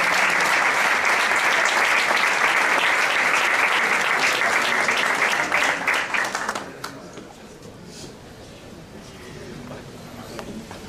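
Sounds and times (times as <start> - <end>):
audience applause: 0.0 - 7.0.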